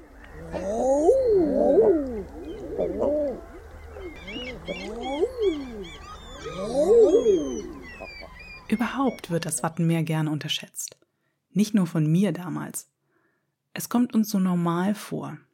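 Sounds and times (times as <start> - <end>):
common eider ducks calling: 1.4 - 9.6
speech: 9.3 - 11.0, 11.6 - 13.0, 13.8 - 15.5.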